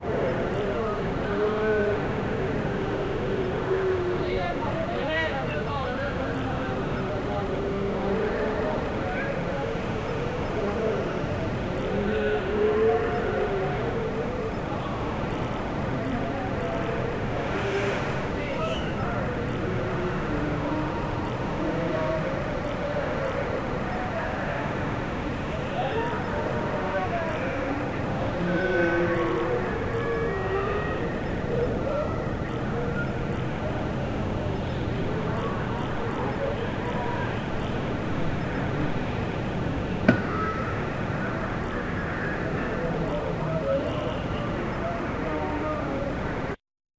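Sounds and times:
medieval city ambience: 0.0s - 46.5s.

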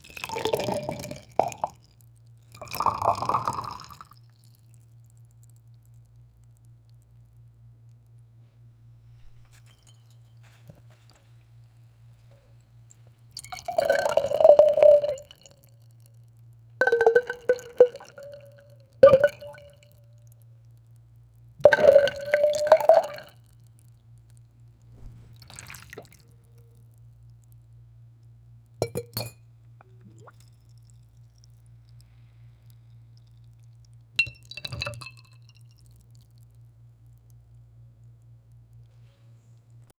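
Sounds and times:
liquids bubbling in glass: 0.0s - 1.9s, 2.5s - 4.5s, 13.4s - 15.7s, 16.8s - 20.0s, 21.6s - 23.4s, 24.9s - 26.5s, 28.8s - 31.4s, 34.2s - 35.9s.

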